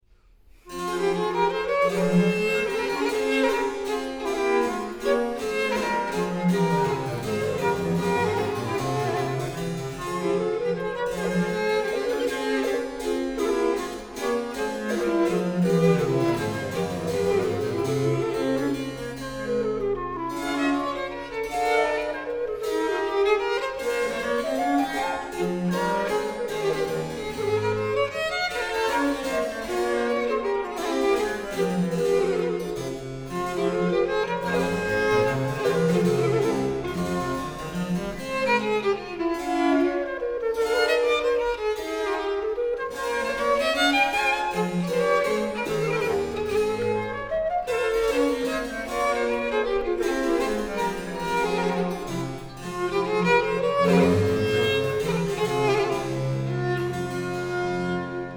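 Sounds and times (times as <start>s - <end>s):
minuet and trio music: 0.6s - 58.3s.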